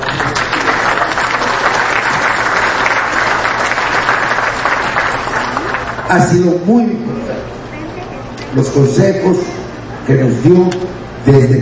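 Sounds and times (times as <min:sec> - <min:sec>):
audience applause: 0:00.0 - 0:06.4
speech: 0:06.1 - 0:07.1, 0:08.5 - 0:11.5.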